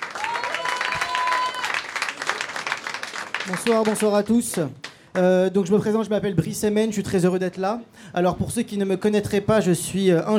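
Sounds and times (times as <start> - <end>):
audience applause: 0.0 - 5.0
speech: 3.4 - 10.3.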